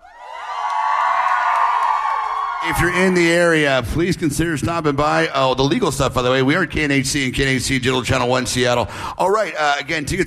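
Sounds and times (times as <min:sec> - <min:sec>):
nightclub crowd cheering: 0:00.0 - 0:03.9
speech: 0:02.6 - 0:10.2.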